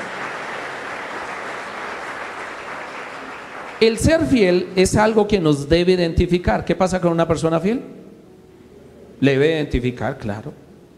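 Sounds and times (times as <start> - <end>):
audience applauding: 0.0 - 4.3
speech: 3.8 - 8.0, 9.2 - 10.6.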